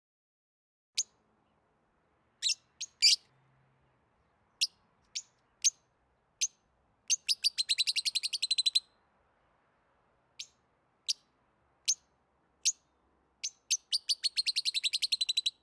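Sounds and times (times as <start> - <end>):
yellow-collared lovebird giving sharp high squeaky chirps: 2.4 - 3.3, 4.6 - 5.8, 6.4 - 8.9, 11.9 - 15.6.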